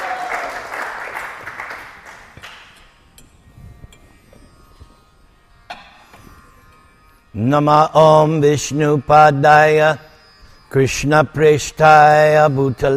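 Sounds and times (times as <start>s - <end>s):
audience applause: 0.0s - 2.6s
speech: 7.4s - 10.0s, 10.7s - 12.9s.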